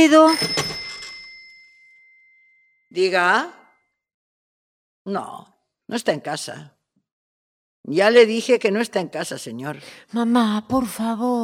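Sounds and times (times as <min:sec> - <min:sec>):
speech: 0:00.0 - 0:00.6, 0:02.9 - 0:03.6, 0:05.0 - 0:06.8, 0:07.8 - 0:11.4
telephone bell ringing: 0:00.0 - 0:02.8.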